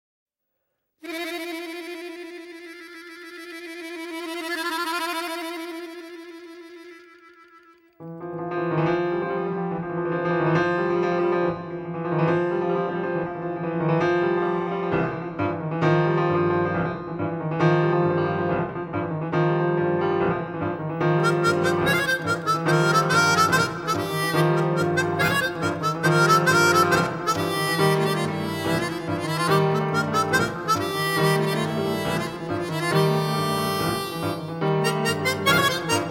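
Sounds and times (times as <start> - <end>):
harmonica: 1.0 - 8.5, 21.0 - 36.0
piano: 1.0 - 36.0.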